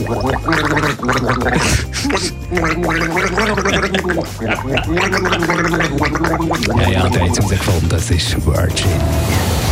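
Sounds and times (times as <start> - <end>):
person gargling a pop song melody: 0.0 - 7.6
speech: 0.1 - 9.6.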